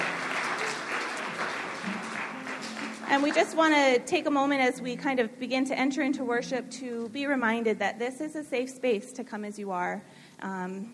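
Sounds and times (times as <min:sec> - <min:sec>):
audience applause: 0:00.0 - 0:03.6
speech: 0:03.1 - 0:10.9.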